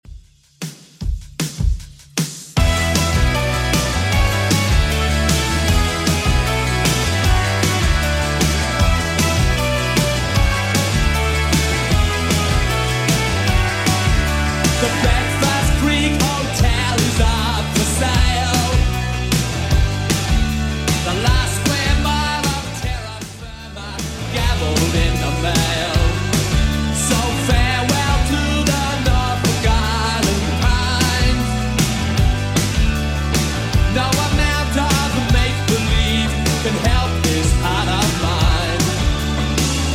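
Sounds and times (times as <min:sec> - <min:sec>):
80s drum machine beat: 0:00.0 - 0:39.9.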